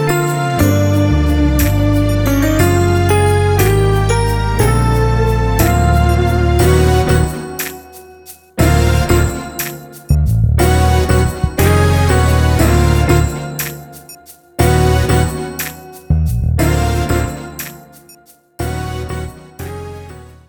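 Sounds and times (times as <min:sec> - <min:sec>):
drumless fusion music: 0:00.0 - 0:20.3.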